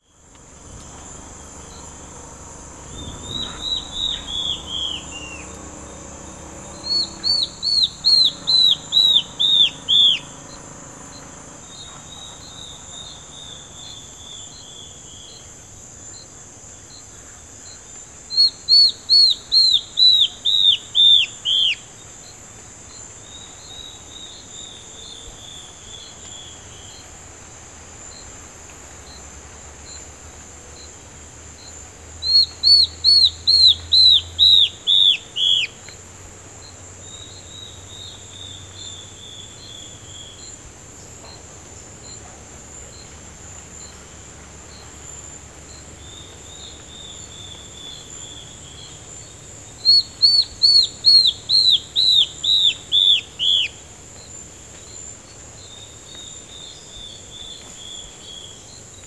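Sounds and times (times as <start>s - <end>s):
yellow-browed antbird: 0.0s - 27.1s, 31.6s - 43.2s, 45.7s - 59.0s.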